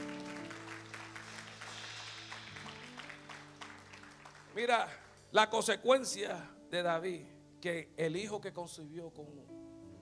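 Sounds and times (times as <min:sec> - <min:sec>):
audience applauding: 0:00.0 - 0:05.2
speech: 0:04.6 - 0:09.6.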